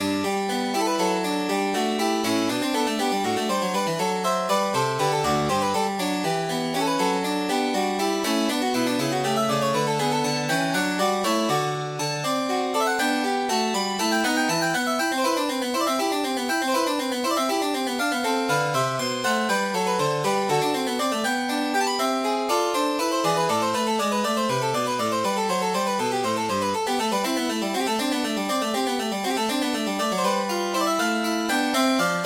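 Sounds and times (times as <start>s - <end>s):
partita on piano: 0.0s - 32.2s.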